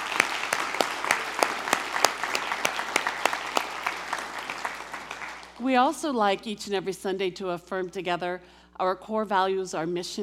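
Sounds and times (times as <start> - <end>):
audience applauding: 0.0 - 5.7
speech: 5.6 - 10.2.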